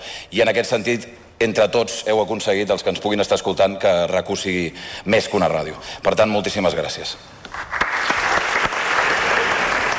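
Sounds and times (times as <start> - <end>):
speech: 0.3 - 7.8
applause after a speech: 7.5 - 9.9.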